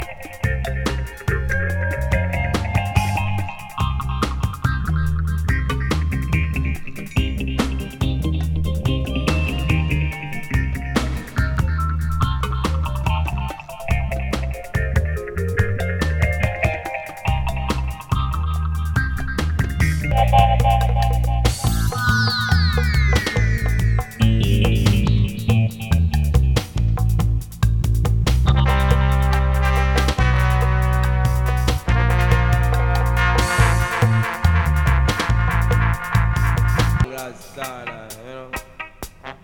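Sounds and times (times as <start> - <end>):
dub music: 0.0 - 37.4.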